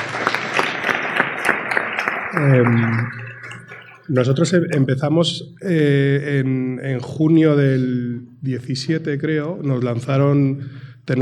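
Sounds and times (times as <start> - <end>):
audience applause: 0.0 - 4.8
speech: 2.4 - 3.2, 4.1 - 11.2.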